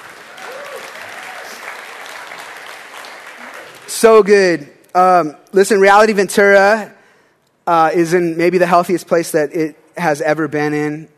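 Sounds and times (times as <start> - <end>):
audience applause: 0.0 - 4.0
speech: 4.0 - 7.0, 7.7 - 11.1.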